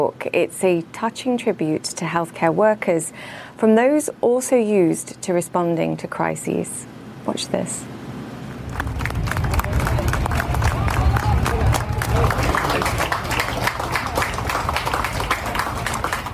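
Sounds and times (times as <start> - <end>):
speech: 0.0 - 8.0
people cheering: 8.7 - 16.3
police officers applauding on a street: 8.7 - 16.3
crowd murmur: 9.0 - 16.3.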